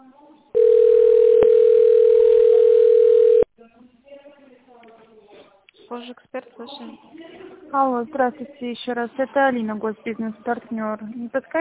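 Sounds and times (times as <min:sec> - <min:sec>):
telephone ringback tone while on hold: 0:00.6 - 0:03.5
speech: 0:06.0 - 0:11.5.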